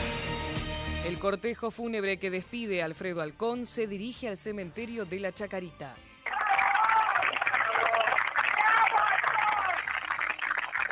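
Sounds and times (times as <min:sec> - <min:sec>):
speech: 0:01.0 - 0:06.1
crowd applauding at a funeral: 0:06.2 - 0:10.8.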